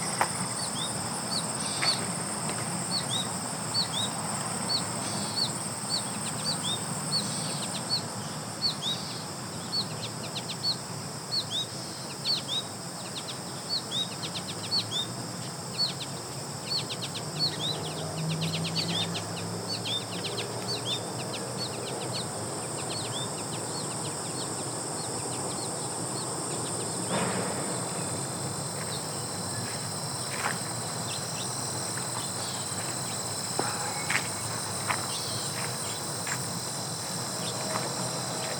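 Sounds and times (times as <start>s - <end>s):
grasshoppers and other insects droning: 0.0s - 38.5s
footsteps on gravel: 29.6s - 31.0s, 31.8s - 38.5s.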